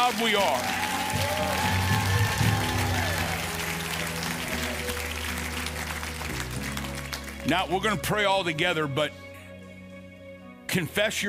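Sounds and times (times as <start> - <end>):
audience applause: 0.0 - 7.8
speech: 0.1 - 1.7, 7.4 - 9.2, 10.7 - 11.2.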